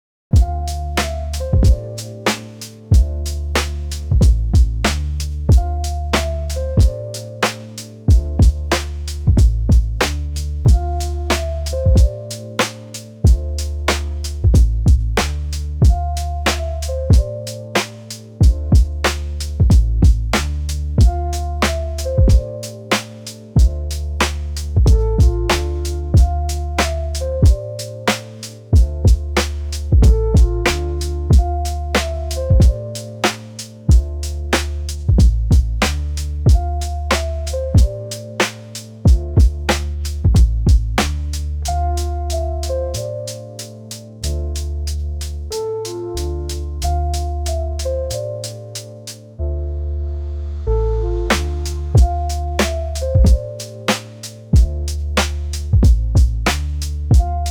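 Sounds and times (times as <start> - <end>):
instrumental music: 0.3 - 57.4.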